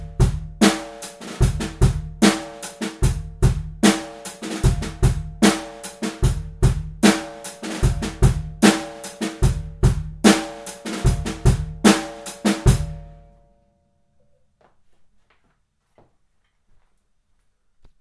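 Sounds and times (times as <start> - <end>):
funk drum beat with drags: 0.0 - 13.1.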